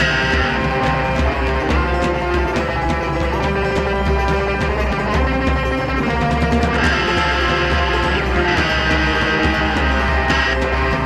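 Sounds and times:
aggressive music loop without bass: 0.0s - 11.0s.

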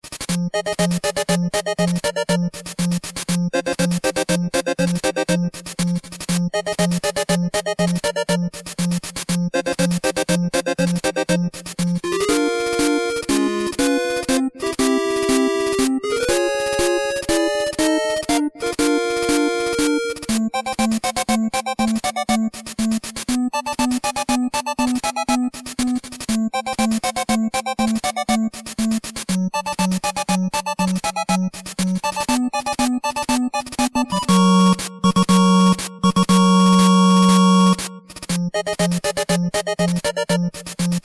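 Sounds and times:
8-bit chiptune music: 0.1s - 41.0s.

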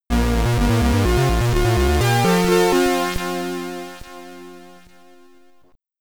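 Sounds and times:
SID stereo chiptune music: 0.1s - 3.6s.

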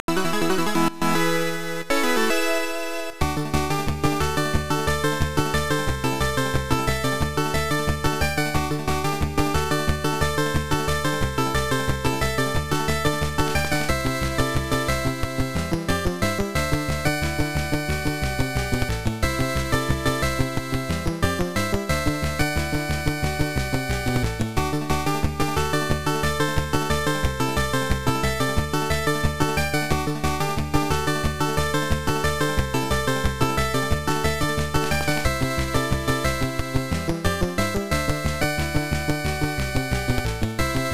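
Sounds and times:
MSX power-up background music: 0.1s - 40.9s.

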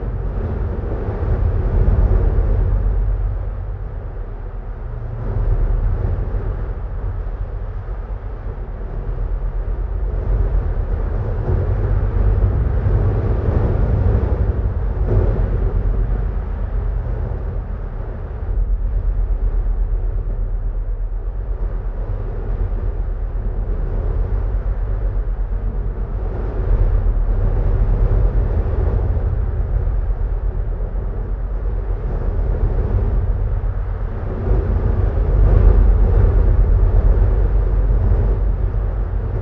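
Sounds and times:
temple winds outdoors: 0.0s - 39.4s.

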